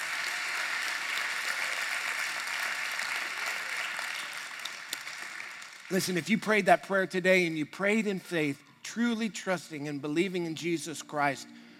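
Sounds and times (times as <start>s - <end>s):
audience clapping hands: 0.0s - 6.7s
speech: 5.9s - 11.6s.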